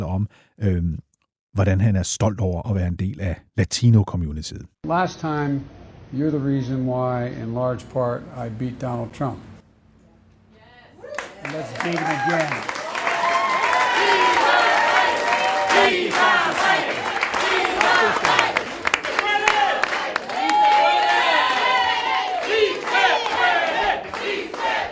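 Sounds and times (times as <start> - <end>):
speech: 0.2 - 9.5, 11.4 - 12.8
crowd cheering: 10.6 - 24.8
scattered clapping: 11.1 - 24.8
crowd chanting a protest slogan: 13.6 - 24.8.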